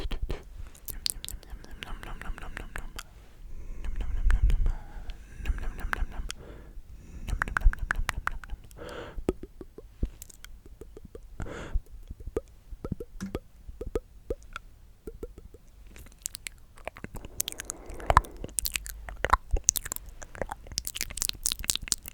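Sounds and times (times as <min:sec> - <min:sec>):
wet mouth clicks smacks and pops: 0:00.0 - 0:03.1, 0:03.8 - 0:06.4, 0:07.2 - 0:22.1
breathy whispers: 0:00.0 - 0:09.2, 0:16.9 - 0:20.6
low rumbling swell: 0:17.2 - 0:18.6.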